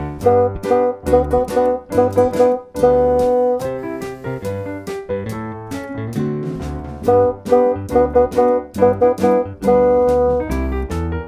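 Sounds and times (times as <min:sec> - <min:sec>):
bassoon: 0:00.1 - 0:04.9, 0:07.0 - 0:11.0.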